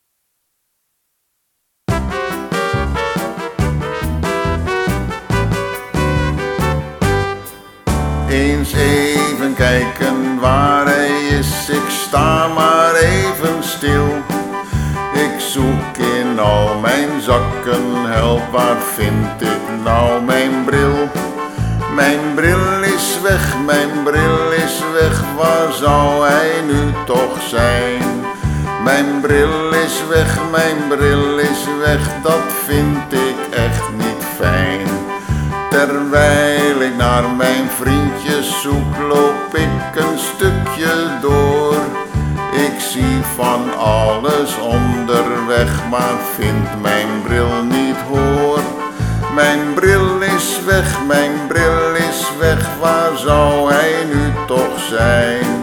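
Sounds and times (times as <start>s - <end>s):
music: 1.9s - 55.6s
singing: 8.3s - 14.3s, 15.1s - 21.3s, 21.9s - 28.2s, 28.8s - 34.9s, 35.7s - 41.8s, 42.6s - 48.7s, 49.3s - 55.6s.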